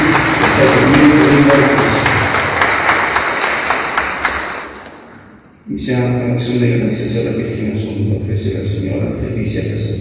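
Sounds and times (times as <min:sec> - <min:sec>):
church congregation applause welcoming people to receive a sacrament: 0:00.0 - 0:05.4
speech: 0:05.8 - 0:09.9.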